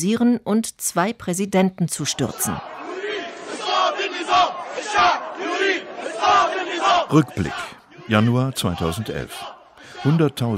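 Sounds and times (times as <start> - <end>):
speech: 0.0 - 2.8, 7.1 - 10.5
crowd of protesters chanting: 2.1 - 10.5.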